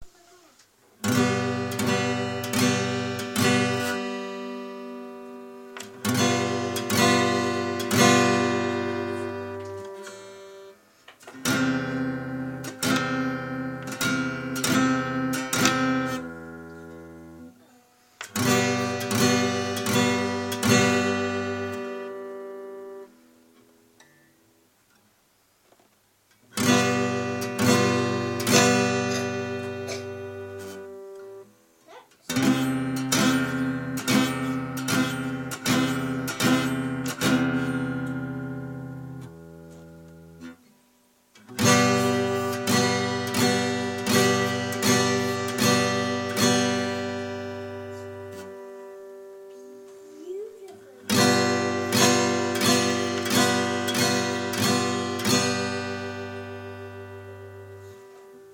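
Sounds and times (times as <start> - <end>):
guitar chords: 1.0 - 25.1, 26.3 - 58.5.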